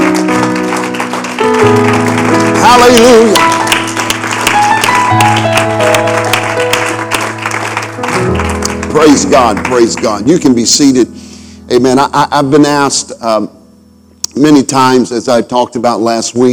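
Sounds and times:
audience applause: 0.0 - 10.5
speech: 2.7 - 3.5, 9.0 - 13.6, 14.4 - 16.5.

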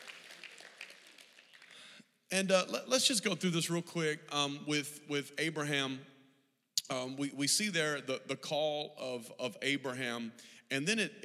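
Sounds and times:
audience applause: 0.0 - 2.0
speech: 2.3 - 6.1, 6.9 - 11.2.

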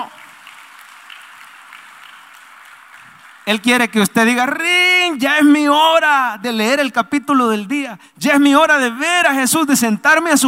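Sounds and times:
audience applause: 0.0 - 3.9
speech: 3.5 - 10.4.

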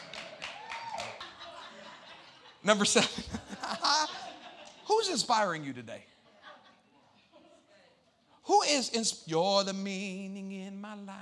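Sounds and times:
crowd clapping: 0.0 - 1.4
laughter: 0.0 - 8.0
speech: 2.6 - 3.8, 5.0 - 6.1, 8.5 - 11.2.

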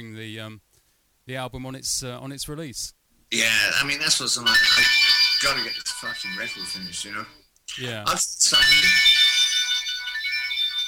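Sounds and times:
speech: 0.0 - 0.7, 1.3 - 9.1
phone ringtone with bright high-pitched electronic melody: 3.4 - 10.8.

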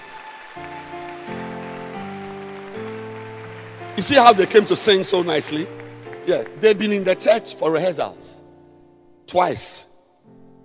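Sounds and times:
audience clapping hands: 0.0 - 7.5
speech: 4.0 - 8.4, 9.3 - 9.9.

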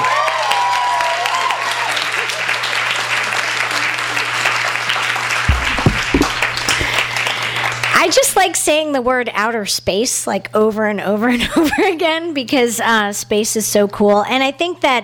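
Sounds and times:
audience applause: 0.0 - 7.9
speech: 8.4 - 15.0.

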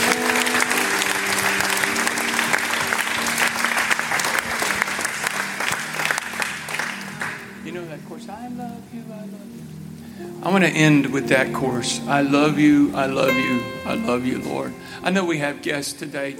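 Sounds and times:
audience clapping: 0.0 - 7.8
speech: 10.4 - 16.3.

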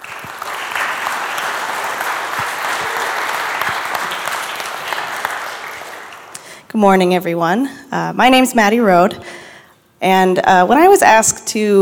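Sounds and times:
audience applause welcoming two speakers onto the stage: 0.0 - 6.4
speech: 6.8 - 9.4, 10.0 - 11.7.

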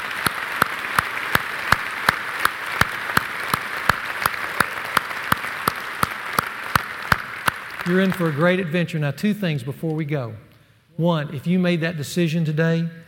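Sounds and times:
audience applause: 0.0 - 8.7
pair of hands clapping a steady beat: 0.0 - 8.7
speech: 7.9 - 13.0.

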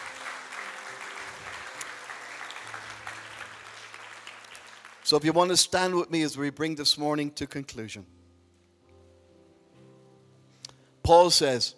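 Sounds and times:
audience applause: 0.0 - 5.2
speech: 5.1 - 8.2, 11.1 - 11.7.

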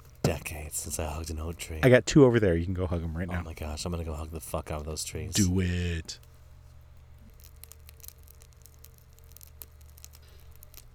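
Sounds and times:
speech: 0.4 - 6.3
fire crackling: 7.3 - 10.9.

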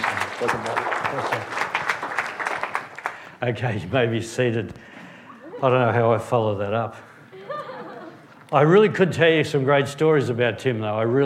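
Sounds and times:
audience applause for a guest: 0.0 - 3.4
speech: 0.4 - 1.7, 3.4 - 5.0, 5.6 - 7.1, 8.5 - 11.2
laughter: 5.3 - 6.1, 7.3 - 8.4.

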